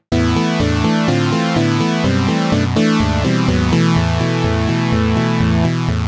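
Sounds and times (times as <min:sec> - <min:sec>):
sawtooth wave tone at a fifth: 0:00.2 - 0:05.9.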